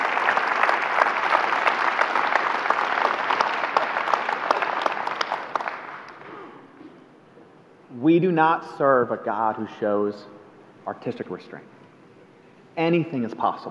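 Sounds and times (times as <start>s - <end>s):
audience applause: 0.0s - 6.2s
speech: 8.2s - 11.8s, 12.8s - 13.6s.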